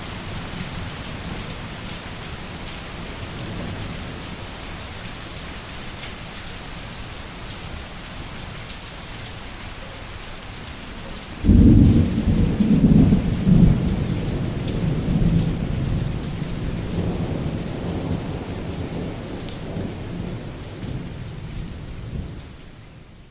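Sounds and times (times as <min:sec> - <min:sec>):
thunder: 0:11.4 - 0:22.4.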